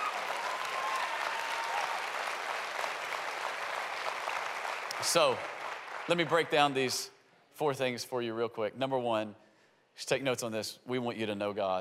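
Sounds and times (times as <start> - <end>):
audience applause: 0.0 - 6.9
speech: 5.0 - 9.4, 10.0 - 11.7.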